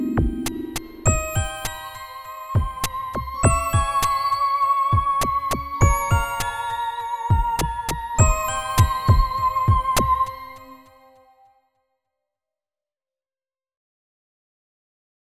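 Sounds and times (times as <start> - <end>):
synth: 0.0 - 11.2.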